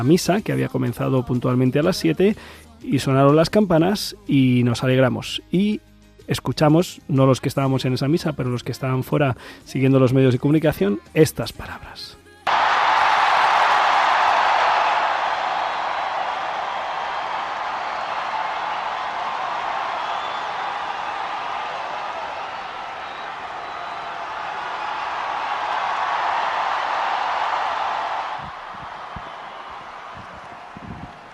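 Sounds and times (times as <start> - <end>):
speech: 0.0 - 12.2
large crowd applauding and cheering in a public square: 12.5 - 31.3.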